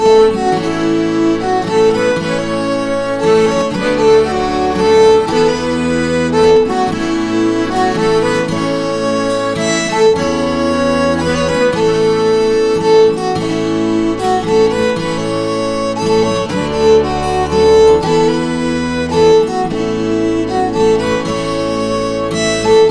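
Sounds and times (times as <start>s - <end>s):
waltz music: 0.0s - 22.8s.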